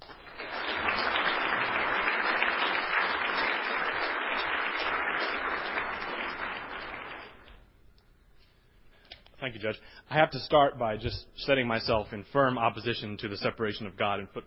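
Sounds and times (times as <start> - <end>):
audience applause welcoming a law professor at a panel discussion: 0.0 - 7.6
speech: 9.5 - 14.4.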